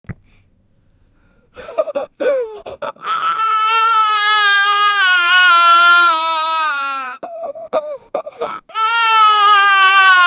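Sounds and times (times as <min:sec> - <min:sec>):
bear cub crying: 0:01.8 - 0:07.3, 0:08.4 - 0:10.2.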